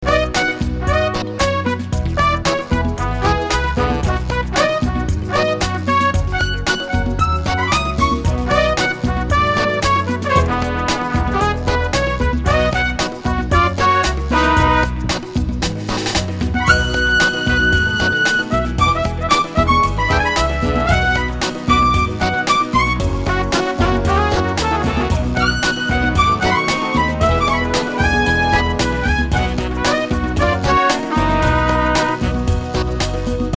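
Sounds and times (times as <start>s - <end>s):
soul ballad: 0.0s - 33.5s.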